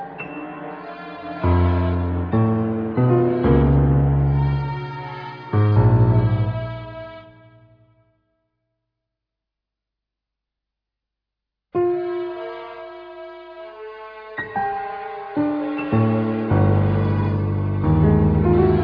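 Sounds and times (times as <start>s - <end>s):
domestic chamber music: 0.0s - 7.8s, 11.8s - 18.8s.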